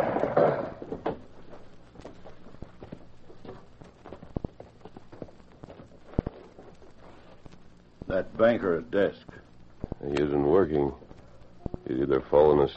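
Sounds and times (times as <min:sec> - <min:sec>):
horse hooves walking slowly: 0:00.0 - 0:07.5
speech: 0:08.2 - 0:09.4, 0:10.1 - 0:11.0, 0:11.9 - 0:12.7.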